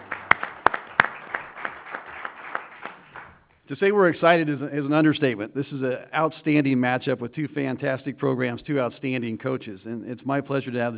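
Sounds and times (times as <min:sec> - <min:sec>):
crowd applauding: 0:00.0 - 0:03.5
speech: 0:03.7 - 0:10.9.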